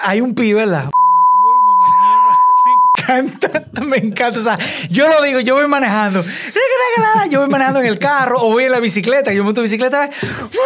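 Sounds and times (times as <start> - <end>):
speech: 0.0 - 1.0, 3.1 - 10.6
censor bleep tone: 1.0 - 3.0
laughter: 1.5 - 4.5, 6.1 - 8.7.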